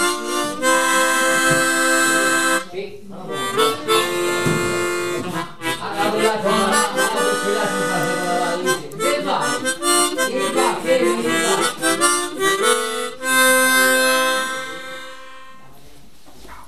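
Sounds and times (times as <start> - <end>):
slow mouth organ playing: 0.0 - 2.7, 3.3 - 15.6.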